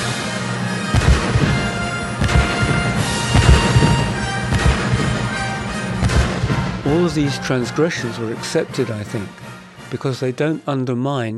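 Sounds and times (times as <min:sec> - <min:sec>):
orchestra playing: 0:00.0 - 0:10.7
heavy artillery booms used as percussion in orchestral music: 0:00.9 - 0:07.8
speech: 0:06.9 - 0:11.3.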